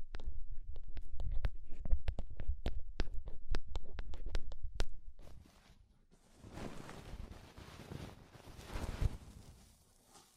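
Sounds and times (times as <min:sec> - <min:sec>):
sharp clicks and taps: 0:00.0 - 0:05.0
soft dense scratchy rustling: 0:05.2 - 0:10.3.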